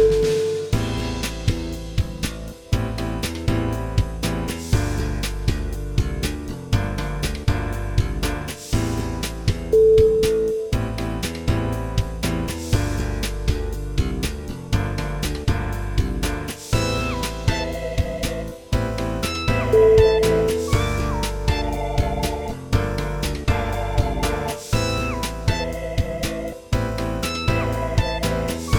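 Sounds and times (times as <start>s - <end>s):
vintage roots music: 0.1s - 28.7s.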